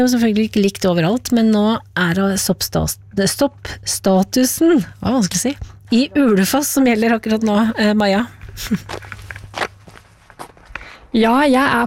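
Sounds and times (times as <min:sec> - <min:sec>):
speech: 0:00.0 - 0:09.2, 0:11.1 - 0:11.8
low steady hum: 0:00.0 - 0:11.8
footsteps of people walking beside a lake at Ulefoss: 0:04.5 - 0:11.0.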